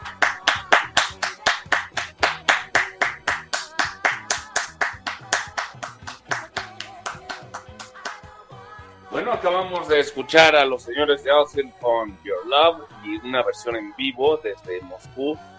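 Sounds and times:
audience applause: 0.0 - 8.2
speech: 9.4 - 15.5.

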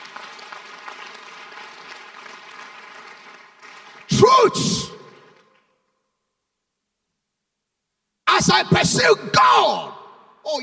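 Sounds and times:
audience clapping hands in praise: 0.0 - 5.7
speech: 4.3 - 5.0, 8.4 - 10.6.

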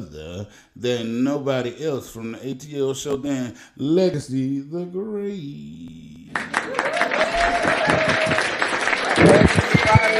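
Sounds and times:
speech: 0.0 - 8.5, 9.2 - 10.1
standing ovation applause from a crowd at a live show: 6.3 - 10.1.

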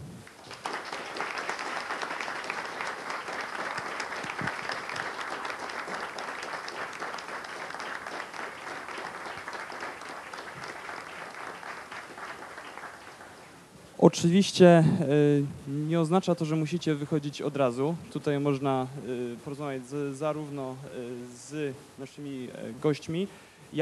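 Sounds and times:
audience applause: 0.0 - 13.5
speech: 14.1 - 23.8.

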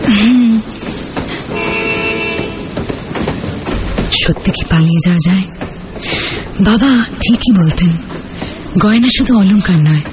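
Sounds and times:
train running with a steady rumbling roar: 0.0 - 10.1
sustained horn-like tone over a train: 1.5 - 2.8
speech: 4.3 - 10.1.

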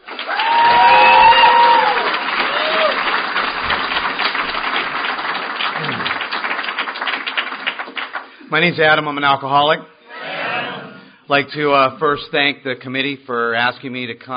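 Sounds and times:
audience applauding a speaker at an Alcoholics Anonymous gathering: 0.0 - 8.4
whistles and cheers: 0.2 - 3.2
speech: 8.5 - 10.0, 11.3 - 14.3.

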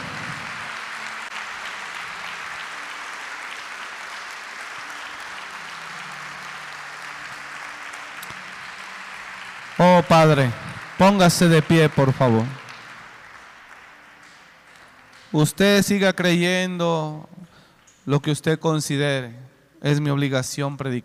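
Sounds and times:
audience applause: 0.0 - 15.7
speech: 9.8 - 12.6, 15.3 - 17.3, 18.1 - 21.0.

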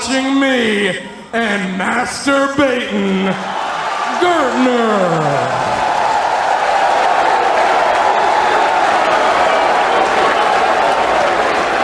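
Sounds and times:
speech: 0.1 - 3.6, 4.2 - 5.7
cheering: 2.8 - 11.8
crowd applause: 3.3 - 11.8.

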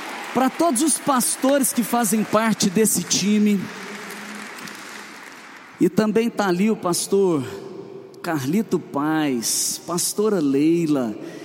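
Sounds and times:
audience applause: 0.0 - 5.8
speech: 0.4 - 3.9, 5.8 - 11.4.

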